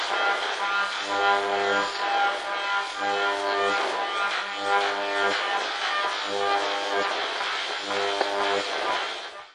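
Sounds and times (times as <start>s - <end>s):
weird science fiction radio interference: 0.0s - 9.4s.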